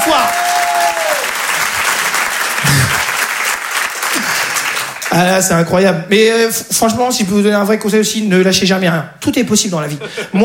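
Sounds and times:
audience applause: 0.0s - 5.2s
speech: 5.2s - 10.4s.

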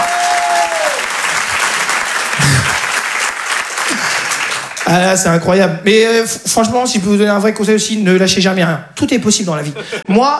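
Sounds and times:
audience shouts: 0.0s - 1.1s
audience applause: 0.0s - 5.0s
speech: 4.9s - 10.3s.

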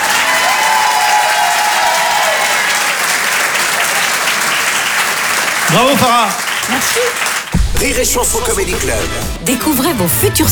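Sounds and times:
faint cheers and whistles: 0.0s - 5.1s
audience applause: 0.0s - 9.2s
speech: 5.7s - 10.5s.

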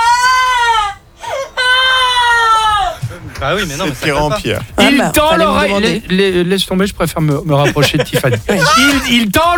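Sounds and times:
woman imitating a distant cry of despair with wails and sobs: 0.0s - 3.2s, 4.8s - 5.8s, 8.1s - 9.3s
laughter: 2.9s - 6.1s, 7.4s - 9.3s
speech: 3.4s - 9.5s.

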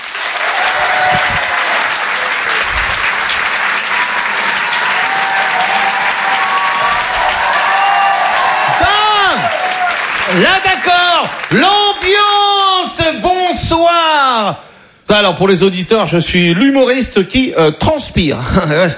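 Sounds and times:
comedy theatre audience applause and cheering: 0.0s - 12.4s
speech: 10.4s - 12.2s, 13.0s - 18.9s.

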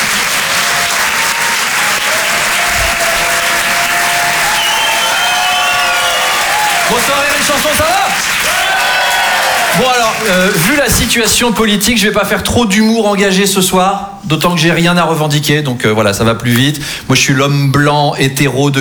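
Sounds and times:
crowd voices: 0.0s - 10.8s
audience clapping in a comedy club: 0.0s - 11.3s
audience whistles: 4.3s - 6.5s
speech: 9.8s - 18.7s.

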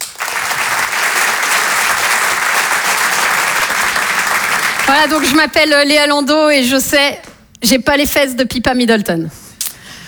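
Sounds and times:
audience applause: 0.0s - 5.4s
speech: 4.9s - 9.4s.

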